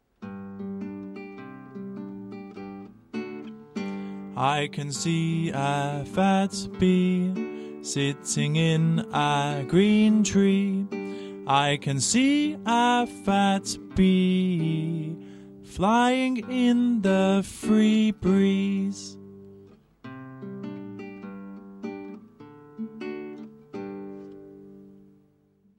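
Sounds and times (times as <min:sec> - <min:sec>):
song: 0:01.1 - 0:19.3.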